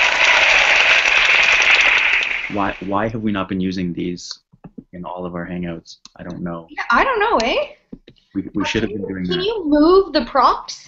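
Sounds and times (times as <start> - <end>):
clapping sound effect from video chat app: 0.0 - 2.9
speech: 2.5 - 10.8.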